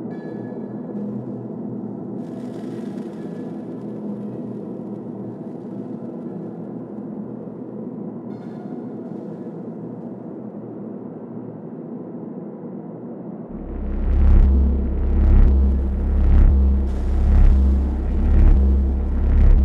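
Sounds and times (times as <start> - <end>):
noise: 0.9 - 19.6.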